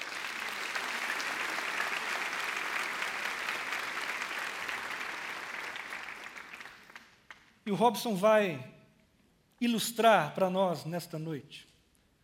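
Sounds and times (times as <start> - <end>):
audience applause: 0.0 - 7.4
speech: 7.7 - 8.7, 9.6 - 11.7.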